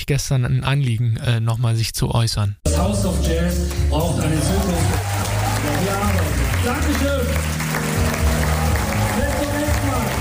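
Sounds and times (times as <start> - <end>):
speech: 0.1 - 7.6
audience cheering and clapping: 2.7 - 10.2.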